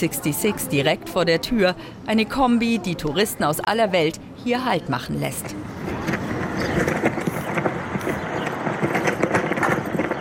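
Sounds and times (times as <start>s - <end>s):
speech: 0.0s - 5.7s
US flag flapping in strong wind: 5.9s - 10.2s.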